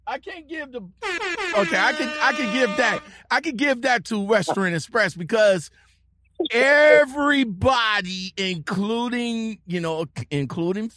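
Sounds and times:
speech: 0.2 - 10.9
harsh buzzer: 1.0 - 3.2.

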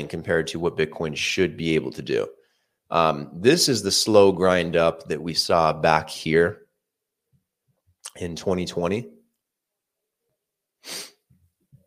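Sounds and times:
speech: 0.0 - 6.6, 8.1 - 9.2, 10.8 - 11.1
sniffling: 10.8 - 11.3.

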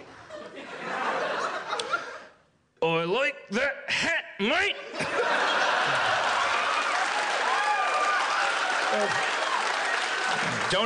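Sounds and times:
laughter: 0.2 - 2.4, 4.7 - 7.0
speech: 2.8 - 5.6
audience applause: 5.3 - 10.8.

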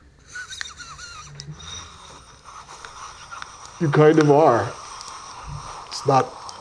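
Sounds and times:
laughter: 0.2 - 4.5
vape pen drawn on, wheezy whistling airflow: 0.2 - 6.5
small clicks: 2.2 - 6.5
speech: 3.8 - 4.8, 6.0 - 6.4.

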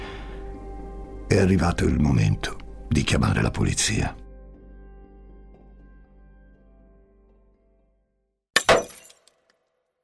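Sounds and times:
speech: 1.3 - 4.2
coffee cup smashing on the floor: 8.6 - 9.5.

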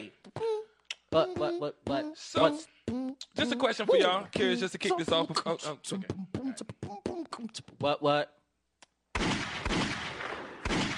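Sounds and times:
speech: 1.1 - 2.8, 3.4 - 6.7, 7.4 - 8.4
gunfire volley: 9.2 - 10.9.

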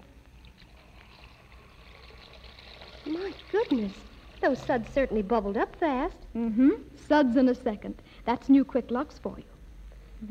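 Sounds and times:
tap water running into a basin: 0.4 - 5.9
speech: 3.1 - 9.5.

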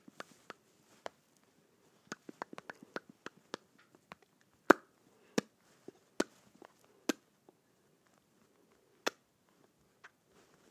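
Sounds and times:
lips smacking together: 0.0 - 1.2, 2.0 - 5.5.

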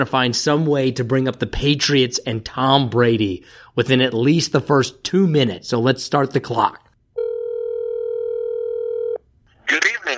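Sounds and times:
speech: 0.0 - 6.8
telephone dial tone: 7.2 - 9.2.

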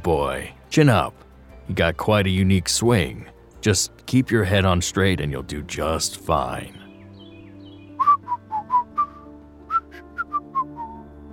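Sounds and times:
speech: 0.0 - 6.8
person whistling a melody: 8.0 - 11.0.

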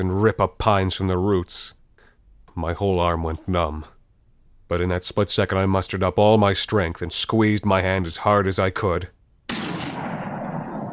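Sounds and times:
speech: 0.0 - 1.8, 2.6 - 4.0, 4.7 - 9.6
gunshot: 9.5 - 10.9.

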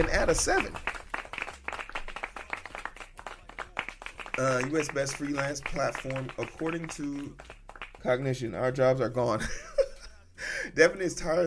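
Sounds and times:
speech: 0.0 - 0.9, 4.4 - 9.7, 10.7 - 11.4
clapping: 0.0 - 8.2
laughter: 9.2 - 10.6.

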